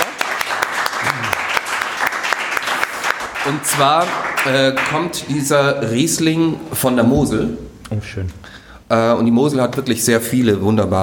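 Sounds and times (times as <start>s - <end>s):
audience applause: 0.0s - 5.3s
low voice murmuring: 1.0s - 1.5s
speech: 3.5s - 11.0s.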